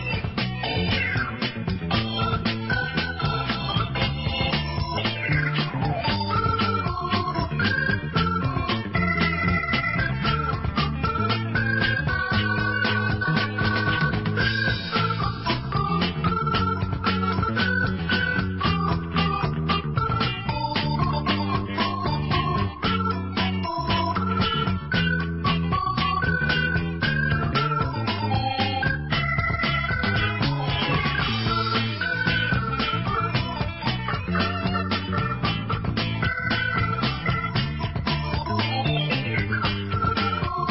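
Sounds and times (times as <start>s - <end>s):
ballet dance music: 0.0s - 40.6s.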